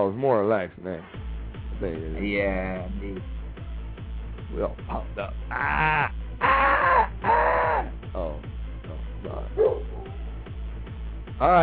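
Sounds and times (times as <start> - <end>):
speech: 0.0 - 1.2, 1.8 - 3.4, 4.5 - 8.5, 11.4 - 11.6
dog barking: 9.6 - 10.2.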